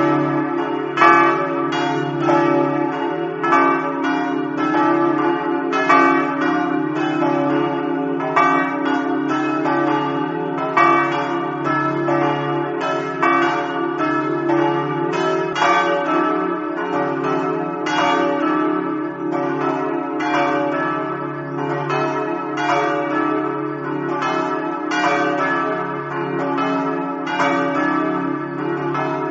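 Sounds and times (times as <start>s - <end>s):
bells ringing in Amaro: 0.0s - 29.2s.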